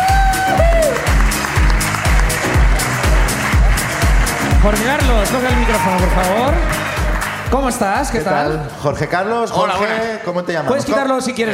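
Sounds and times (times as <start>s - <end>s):
audience applause: 0.0s - 8.2s
speech: 4.6s - 6.8s, 7.5s - 11.5s.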